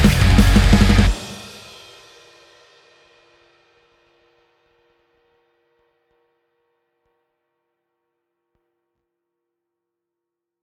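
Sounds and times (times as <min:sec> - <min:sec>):
wet metal drums: 0:00.0 - 0:02.0.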